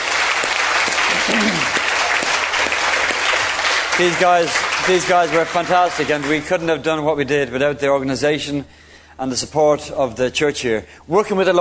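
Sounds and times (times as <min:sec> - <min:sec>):
round of applause: 0:00.0 - 0:06.6
speech: 0:01.3 - 0:01.8, 0:04.0 - 0:11.5.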